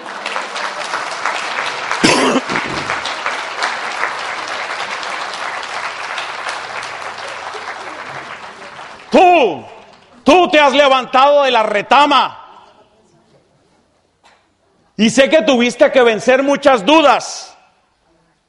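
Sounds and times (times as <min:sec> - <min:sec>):
audience applauding: 0:00.0 - 0:10.8
speech: 0:10.6 - 0:12.4, 0:15.0 - 0:17.5.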